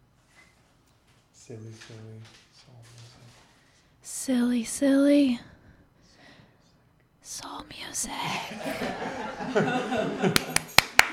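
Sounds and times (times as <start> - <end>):
speech: 1.5 - 3.4, 4.0 - 5.6, 7.3 - 10.6
laughter: 8.4 - 10.7
sharp separate claps after a music act introduction: 10.3 - 11.1.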